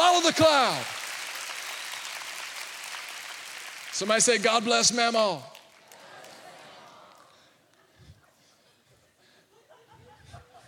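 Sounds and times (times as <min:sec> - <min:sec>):
audience clapping hands: 0:00.0 - 0:07.6
speech: 0:00.3 - 0:01.0, 0:04.0 - 0:05.5
laughter: 0:06.0 - 0:10.6.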